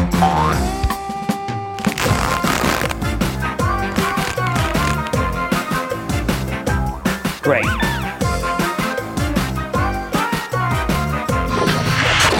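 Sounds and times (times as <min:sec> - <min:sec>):
cartoon boing of something bouncing: 0:00.0 - 0:00.8
steady loud music: 0:01.8 - 0:12.3.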